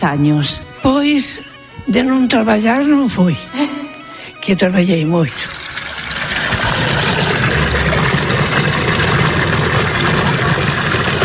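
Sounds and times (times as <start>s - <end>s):
speech: 0.0s - 3.8s, 4.5s - 5.6s
water flowing from the Asburgas fountain in Orense: 5.2s - 11.2s.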